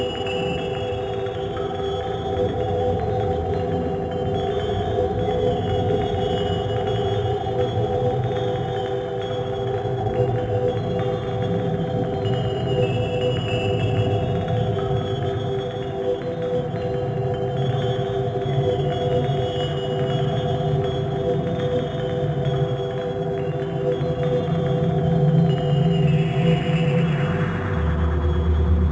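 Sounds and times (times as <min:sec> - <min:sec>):
dream atmosphere: 0:00.0 - 0:28.9.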